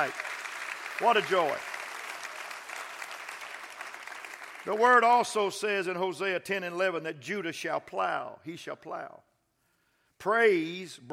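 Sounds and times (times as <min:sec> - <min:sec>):
speech: 0:00.0 - 0:00.3, 0:01.0 - 0:01.7, 0:04.6 - 0:09.3, 0:10.2 - 0:11.1
audience clapping hands: 0:00.0 - 0:05.6.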